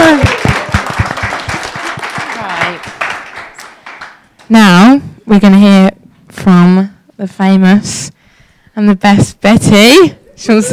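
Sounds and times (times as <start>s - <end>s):
audience applause: 0.0s - 4.3s
speech: 4.5s - 5.9s, 7.2s - 8.2s, 8.8s - 10.7s.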